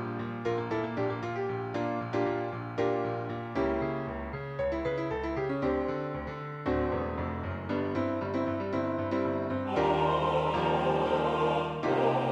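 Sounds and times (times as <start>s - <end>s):
MIDI piano: 0.0s - 12.2s
MIDI choir singing: 9.7s - 12.2s.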